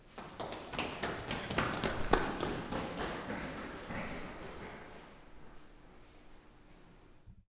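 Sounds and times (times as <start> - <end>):
person running: 0.0 - 5.6.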